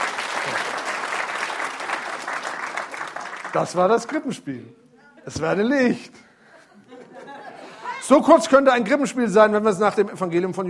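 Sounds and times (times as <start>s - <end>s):
audience applause: 0.0s - 4.2s
speech: 3.6s - 6.3s, 8.1s - 10.6s
laughter: 6.4s - 8.1s.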